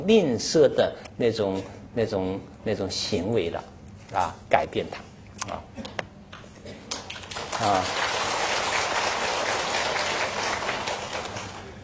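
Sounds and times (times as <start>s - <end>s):
speech: 0.0s - 5.9s, 7.6s - 8.1s
audience applause at a Buddhist sermon on generosity: 6.9s - 11.8s.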